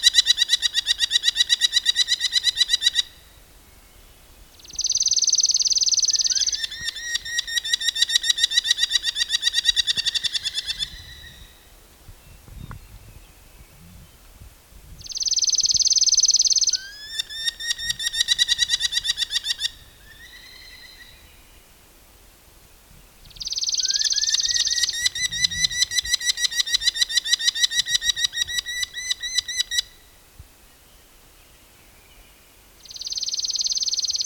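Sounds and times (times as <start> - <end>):
Falco columbarius merlin calling: 0.0 - 3.4, 4.5 - 11.7, 15.0 - 21.5, 23.2 - 30.2.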